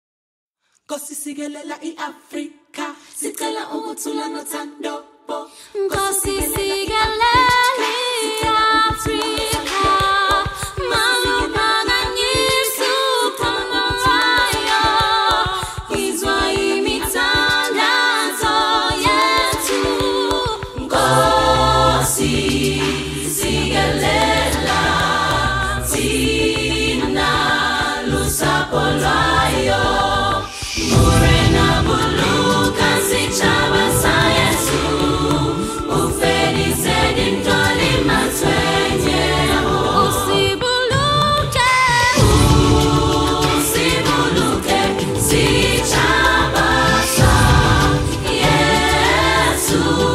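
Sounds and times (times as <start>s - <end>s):
youth choir singing a national anthem: 1.4s - 50.1s.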